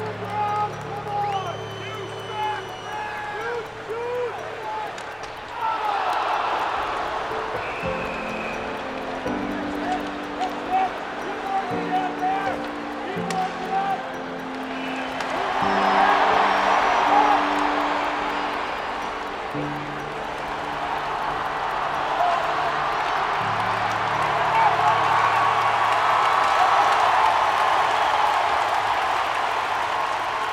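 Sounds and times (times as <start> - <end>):
professional ice hockey arena ambience: 0.0 - 30.5.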